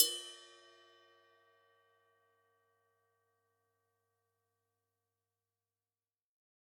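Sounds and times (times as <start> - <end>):
ride cymbal bell: 0.0 - 1.2.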